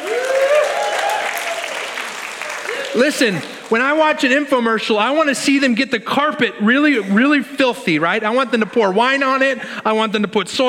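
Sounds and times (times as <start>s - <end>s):
crowd clapping: 0.0s - 4.4s
speech: 3.0s - 10.6s.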